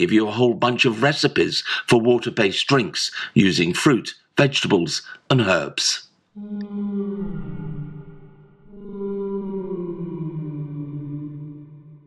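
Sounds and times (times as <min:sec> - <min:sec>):
speech: 0:00.0 - 0:07.5
whale singing its song: 0:06.4 - 0:12.0.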